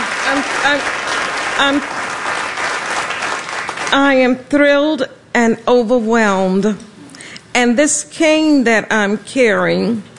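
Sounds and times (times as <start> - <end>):
standing ovation audience applause for a performer: 0.0 - 4.0
speech: 0.3 - 2.0, 3.9 - 6.9, 7.6 - 10.1.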